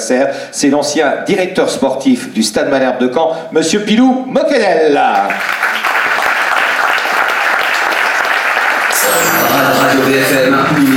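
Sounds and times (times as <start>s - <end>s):
speech: 0.1s - 5.9s
audience applause: 5.3s - 10.9s.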